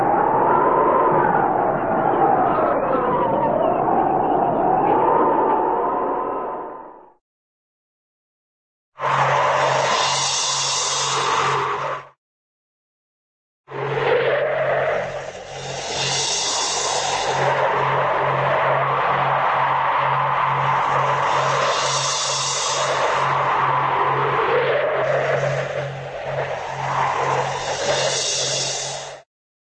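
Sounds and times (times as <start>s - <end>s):
cartoon wind howling and whistling: 0.0s - 7.2s, 9.0s - 12.2s, 13.7s - 29.3s.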